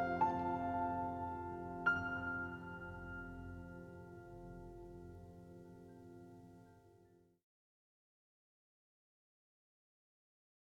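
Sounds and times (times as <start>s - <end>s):
relaxing piano lullaby: 0.0s - 7.4s.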